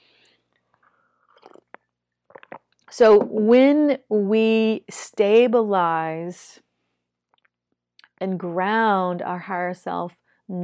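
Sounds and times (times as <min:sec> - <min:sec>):
person sipping water: 0:00.8 - 0:02.8
speech: 0:02.9 - 0:06.6, 0:08.2 - 0:10.6.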